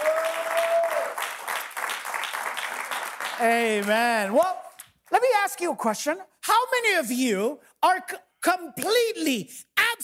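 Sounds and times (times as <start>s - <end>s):
audience applause: 0.0s - 4.2s
speech: 3.4s - 10.0s.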